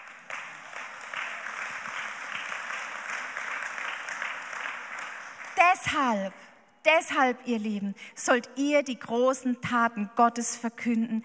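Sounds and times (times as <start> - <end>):
crowd applause: 0.0 - 5.6
speech: 5.6 - 11.2.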